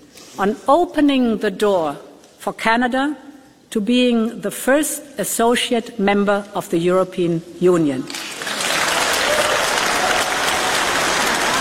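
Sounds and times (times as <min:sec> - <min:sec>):
speech: 0:00.4 - 0:08.2
large audience applauding: 0:08.1 - 0:11.6.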